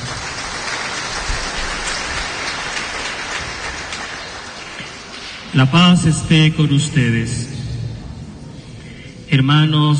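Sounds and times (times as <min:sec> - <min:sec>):
audience applauding loudly: 0:00.0 - 0:05.2
speech: 0:05.5 - 0:07.6, 0:09.3 - 0:09.9.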